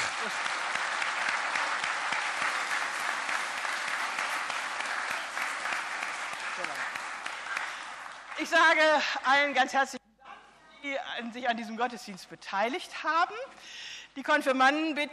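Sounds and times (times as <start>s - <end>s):
audience applause: 0.0s - 8.9s
speech: 0.2s - 0.5s, 8.4s - 10.0s, 11.2s - 15.1s.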